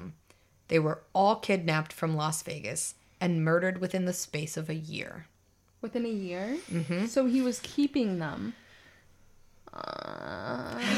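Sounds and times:
speech: 0.7 - 8.6, 9.8 - 10.9
voice in vocal fry imitating a door creaking open: 9.7 - 10.9.

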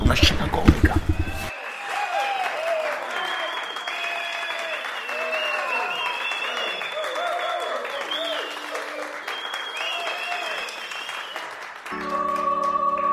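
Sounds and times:
audience applause: 0.0 - 13.0.

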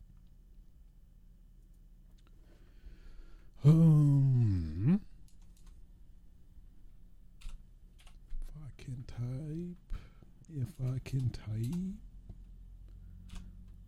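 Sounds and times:
person talking: 3.6 - 5.1, 8.4 - 12.1
typing on a computer keyboard: 5.2 - 5.8, 7.4 - 8.2, 10.9 - 12.0.

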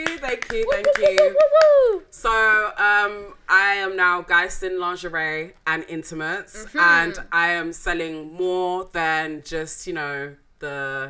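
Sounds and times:
applause: 0.0 - 1.9
speech: 0.2 - 11.0.

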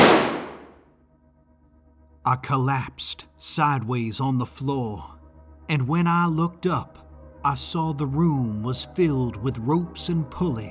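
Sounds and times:
gunshot: 0.0 - 0.8
speech: 2.2 - 10.6.

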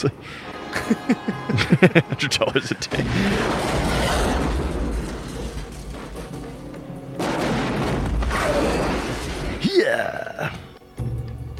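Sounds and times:
laughter: 0.0 - 3.6
speech: 0.0 - 4.3
crackling blasts: 0.4 - 9.8
video game pylon explosion booms: 2.9 - 9.7.

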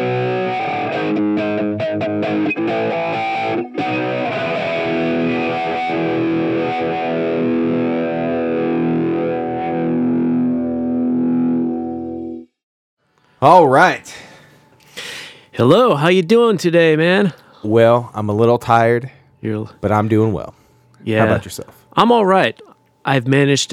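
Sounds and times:
rock song with slap bass guitar and distorted guitar: 0.0 - 12.4
speech: 2.0 - 3.8, 13.4 - 14.2, 15.6 - 23.7.

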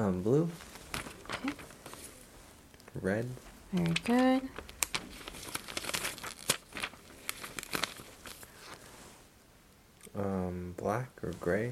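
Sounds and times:
crinkling of doctor's coat and plastic gloves: 0.0 - 9.2
speech: 0.1 - 0.7, 3.0 - 4.7, 10.2 - 11.7.

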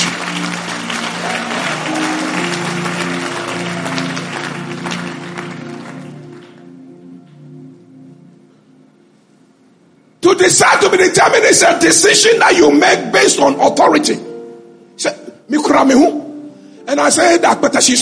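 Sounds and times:
crowd audience clapping hands: 0.0 - 7.0
speech: 10.4 - 14.3, 15.0 - 16.2, 16.9 - 18.0.

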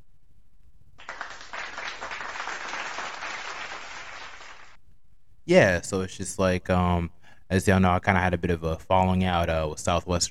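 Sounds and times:
applause sound effect from button: 1.0 - 4.8
speech: 5.5 - 10.2.

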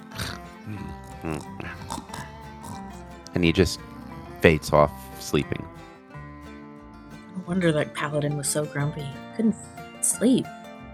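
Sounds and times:
person imitating loud snoring: 0.0 - 3.0, 3.7 - 5.0
speech: 0.7 - 1.7, 3.4 - 5.8, 7.4 - 10.6.

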